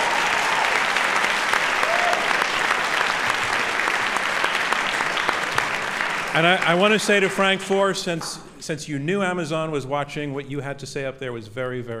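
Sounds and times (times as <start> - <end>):
audience round of applause: 0.0 - 8.4
speech: 6.4 - 11.9.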